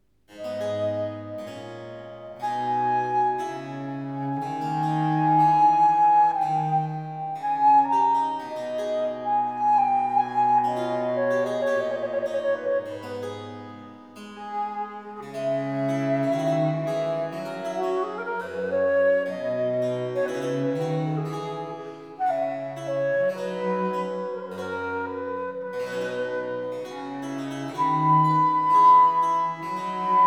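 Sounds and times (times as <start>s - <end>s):
flute sonata with basso continuo in C major, adagio: 0.4s - 30.2s.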